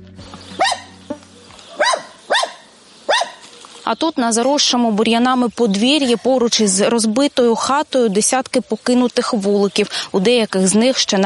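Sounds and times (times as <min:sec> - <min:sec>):
abandoned dog barking: 0:00.6 - 0:01.0, 0:01.7 - 0:03.5
speech: 0:03.9 - 0:11.2.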